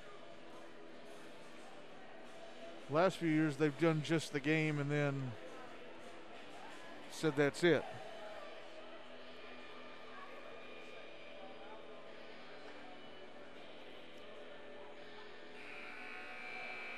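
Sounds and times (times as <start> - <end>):
speech: 2.9 - 5.4, 7.2 - 8.0
arena buzzer: 15.5 - 16.9.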